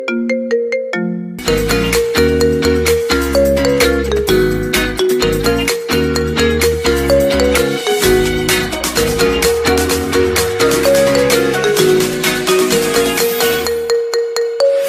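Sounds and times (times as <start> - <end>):
simple ringtone: 0.0 - 14.8.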